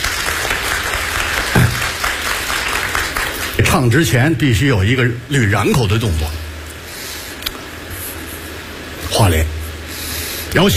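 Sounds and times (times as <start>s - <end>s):
audience applause during a live stage performance: 0.0s - 3.7s
speech: 3.7s - 6.4s, 10.5s - 10.7s.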